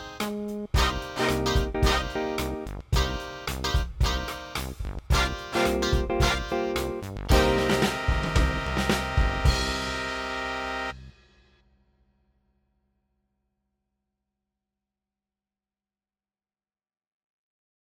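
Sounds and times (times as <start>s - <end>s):
tenor horn warmup in E flat: 0.2s - 11.1s.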